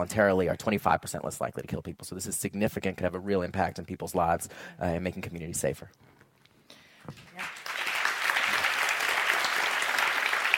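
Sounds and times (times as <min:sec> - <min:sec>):
speech: 0:00.0 - 0:06.2, 0:07.1 - 0:07.6
audience applause: 0:07.3 - 0:10.5.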